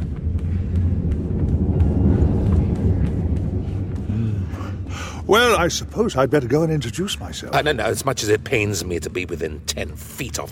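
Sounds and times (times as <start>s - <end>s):
space yacht engine purring: 0.0s - 6.1s
speech: 5.3s - 10.5s.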